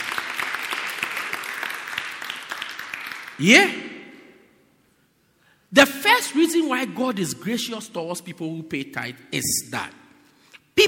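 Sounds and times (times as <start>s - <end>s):
crowd clapping: 0.0s - 3.4s
speech: 3.4s - 3.8s, 5.7s - 10.0s.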